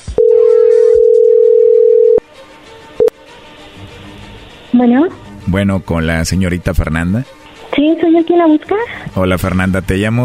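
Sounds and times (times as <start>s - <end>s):
telephone call ringing through: 0.2s - 2.2s
speech: 4.8s - 10.2s.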